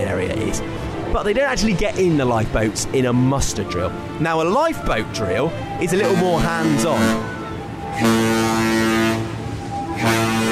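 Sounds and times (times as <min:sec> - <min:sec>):
speech: 0:00.2 - 0:07.3, 0:08.0 - 0:08.9
ship's horn emergency blasts: 0:03.6 - 0:10.5.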